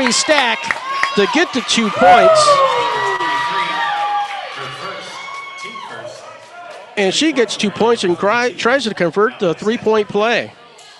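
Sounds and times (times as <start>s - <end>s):
speech: 0.0s - 2.8s, 7.0s - 10.6s
basketball crowd roaring and cheering: 0.0s - 8.2s
high-pitched whoops and shouts from the crowd: 1.9s - 6.1s.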